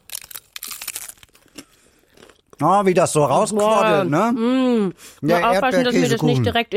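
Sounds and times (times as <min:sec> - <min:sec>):
bite into a taco shell filled with strawberries and quark, topped with a pretzel stick: 0:00.0 - 0:02.6
speech: 0:02.6 - 0:06.7.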